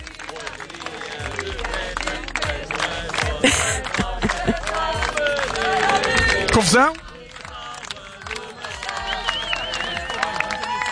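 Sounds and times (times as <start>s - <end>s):
crowd clapping at a beach party celebration: 0.0s - 10.8s
overlapping voices: 0.0s - 10.8s
laughter: 3.0s - 5.3s
speech: 6.6s - 7.0s
excited shouts: 9.1s - 10.8s.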